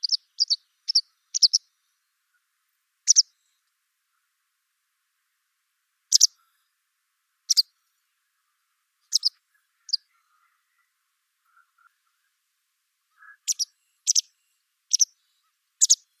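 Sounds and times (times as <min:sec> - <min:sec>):
white wagtail calls: 0:00.0 - 0:01.6, 0:06.1 - 0:06.3, 0:13.5 - 0:14.3, 0:14.9 - 0:15.1, 0:15.8 - 0:16.1.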